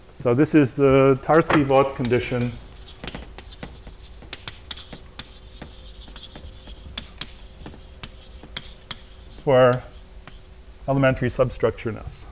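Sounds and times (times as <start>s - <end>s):
speech: 0.2s - 2.6s, 9.5s - 9.9s, 10.9s - 12.2s
chalk writing on a blackboard during a mathematics lecture: 1.7s - 10.5s.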